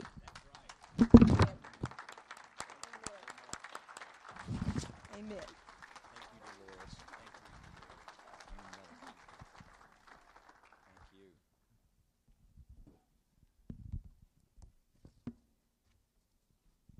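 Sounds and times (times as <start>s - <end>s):
audience clapping: 0.0s - 11.4s.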